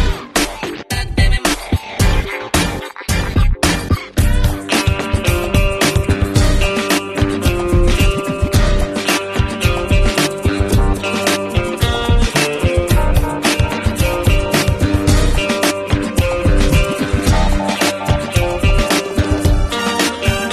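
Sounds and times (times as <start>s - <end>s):
trending background music ringtone: 0.1s - 20.5s.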